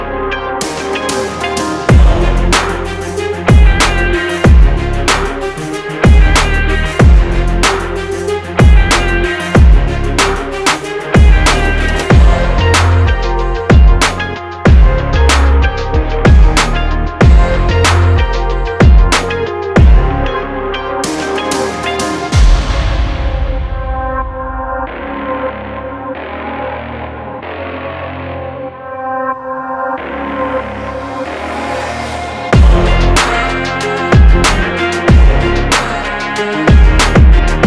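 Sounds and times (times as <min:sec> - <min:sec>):
hard motivational rock-inspired rap beat: 0:00.6 - 0:22.8, 0:32.5 - 0:37.6.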